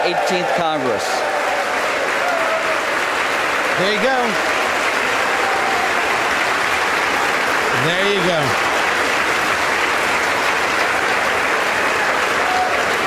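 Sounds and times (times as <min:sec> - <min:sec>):
applause from a large crowd in the House chamber: 0:00.0 - 0:13.0
speech: 0:00.1 - 0:01.4, 0:03.8 - 0:04.6, 0:07.8 - 0:08.7.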